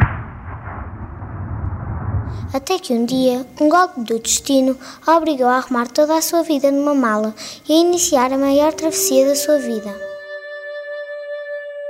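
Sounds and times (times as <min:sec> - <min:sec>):
gunfire: 0:00.0 - 0:02.5
speech: 0:02.4 - 0:10.1.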